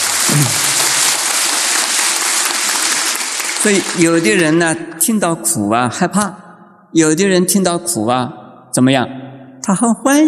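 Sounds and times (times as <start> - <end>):
audience applause: 0.0 - 4.6
speech: 0.3 - 0.7, 3.6 - 10.2.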